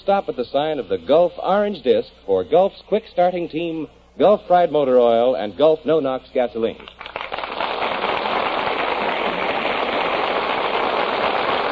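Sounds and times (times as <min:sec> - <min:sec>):
speech: 0:00.0 - 0:07.1
studio audience applause: 0:07.0 - 0:11.6.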